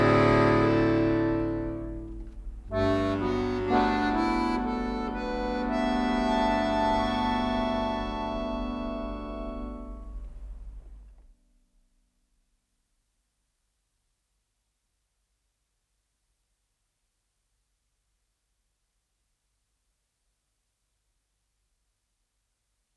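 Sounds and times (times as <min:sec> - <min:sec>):
melody: 0:00.0 - 0:10.2.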